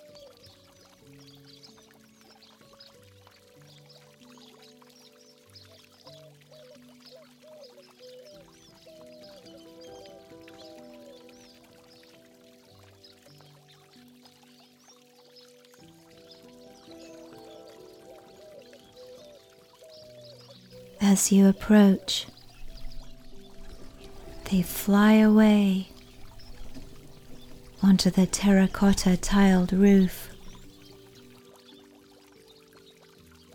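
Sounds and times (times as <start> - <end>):
fountain water splashing and pouring: 0.0 - 33.5
soft slow instrumental melody: 0.0 - 33.5
speech: 21.1 - 22.3, 24.5 - 25.9, 27.9 - 30.3.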